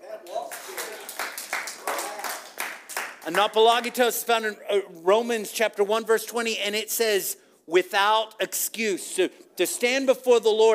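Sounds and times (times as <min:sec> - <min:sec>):
audience clapping: 0:00.2 - 0:03.9
speech: 0:03.2 - 0:10.7.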